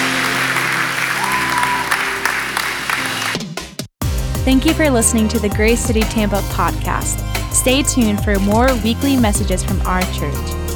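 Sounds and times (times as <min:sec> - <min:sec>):
church congregation applauding: 0:00.0 - 0:03.7
speech: 0:04.5 - 0:10.6.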